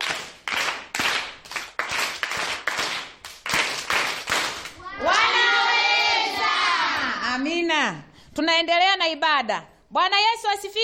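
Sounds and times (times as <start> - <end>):
church congregation clapping in unison for the singers: 0.0 - 7.1
speech: 7.9 - 10.8.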